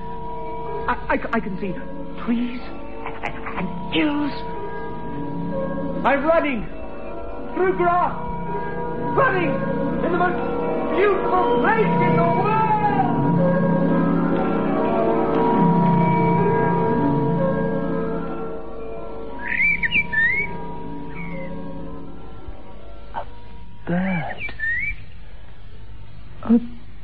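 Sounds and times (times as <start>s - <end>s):
speech: 0.9s - 2.9s, 3.6s - 4.5s, 5.6s - 6.8s, 7.6s - 12.6s
sustained ringing harmonic tone: 1.8s - 26.1s
high warbling bird chirps: 19.3s - 22.0s, 23.9s - 25.8s.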